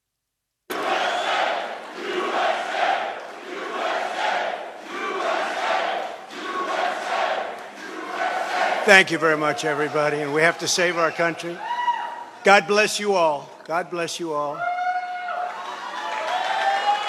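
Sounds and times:
crowd applause: 0:00.7 - 0:11.4, 0:15.2 - 0:17.0
crowd cheering: 0:00.7 - 0:17.0
speech: 0:08.9 - 0:11.7, 0:12.4 - 0:14.7.

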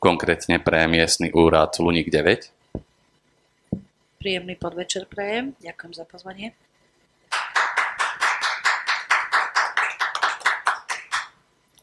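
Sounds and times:
speech: 0:00.0 - 0:02.8, 0:04.2 - 0:06.7
audience applause in steady unison: 0:07.3 - 0:11.4.

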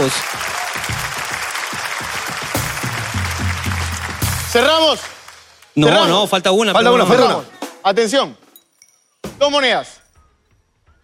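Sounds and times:
speech: 0:00.0 - 0:00.5, 0:04.5 - 0:05.1, 0:05.8 - 0:08.4, 0:09.4 - 0:10.0
audience applause after a coin magic trick: 0:00.0 - 0:06.2.

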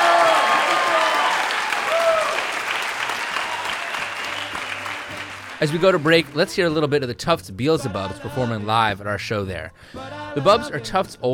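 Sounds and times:
audience applause for a stand-up comedian: 0:00.0 - 0:06.5
speech: 0:05.6 - 0:11.3.

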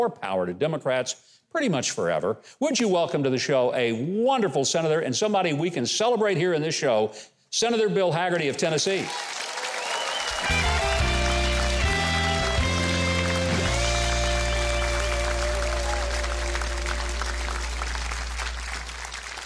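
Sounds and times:
speech: 0:00.0 - 0:09.4
crowd applauding: 0:09.0 - 0:19.4
band playing: 0:10.3 - 0:19.4
bass line: 0:10.4 - 0:19.4.

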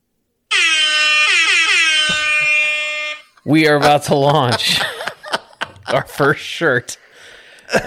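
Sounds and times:
reggae-style air horn announcement sound effect blaring: 0:00.5 - 0:03.4
laughter: 0:01.9 - 0:02.9, 0:03.5 - 0:06.8, 0:07.7 - 0:07.8
speech: 0:03.4 - 0:04.9, 0:05.9 - 0:07.0.

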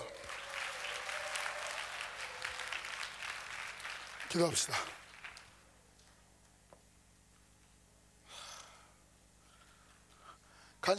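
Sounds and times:
audience applause: 0:00.0 - 0:05.6
speech: 0:04.3 - 0:05.0.

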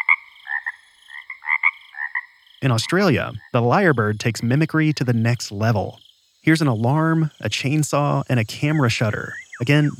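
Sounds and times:
mockingbird mimicking frog croaks: 0:00.0 - 0:05.0, 0:08.4 - 0:09.9
speech: 0:02.6 - 0:09.9.

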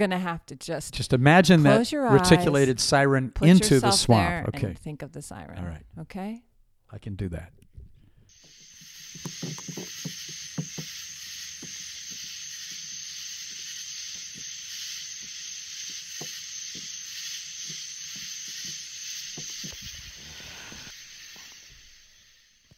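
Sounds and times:
speech: 0:00.0 - 0:07.6, 0:09.2 - 0:10.1
high-pitched hiss of insects in a swamp: 0:01.2 - 0:22.7
croaks: 0:08.2 - 0:22.7.

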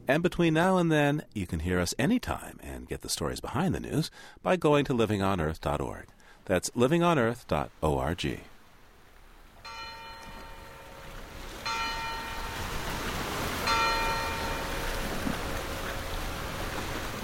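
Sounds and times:
speech: 0:00.1 - 0:08.5
noontime church bells from two churches in Baume-les-Mimosas, France: 0:09.6 - 0:16.2
steady rushing wash on a rocky south coast of France: 0:09.6 - 0:17.2.

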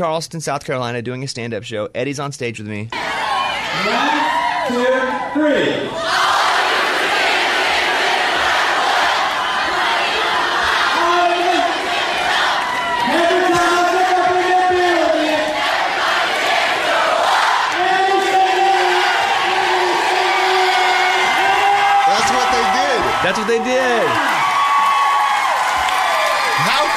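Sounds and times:
speech: 0:00.0 - 0:06.4
crowd cheering: 0:03.0 - 0:26.9
crowd singing: 0:06.0 - 0:21.4.

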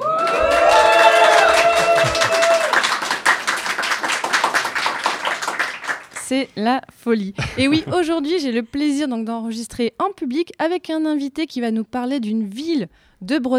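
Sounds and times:
live bar audience cheering: 0:00.0 - 0:06.2
laughter: 0:00.3 - 0:02.9, 0:07.4 - 0:08.4
speech: 0:06.3 - 0:13.5.

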